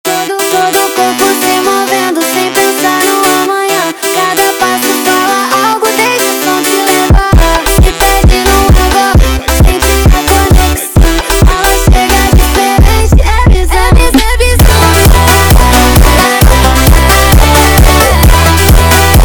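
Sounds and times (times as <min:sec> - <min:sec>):
funk music: 0:00.1 - 0:19.2.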